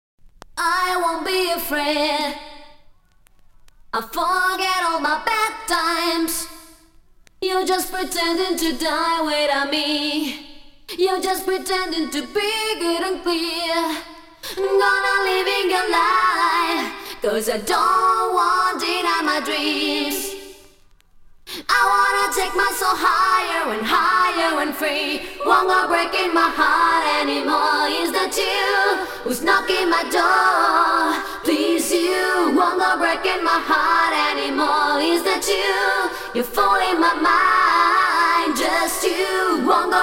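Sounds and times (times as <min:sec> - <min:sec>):
vocals: 0:00.4 - 0:40.0.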